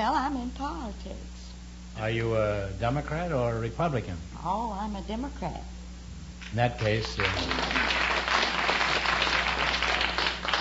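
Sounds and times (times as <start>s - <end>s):
faint low hum: 0.0s - 10.5s
speech: 2.0s - 5.8s, 6.5s - 8.1s
audience applauding: 6.8s - 10.5s.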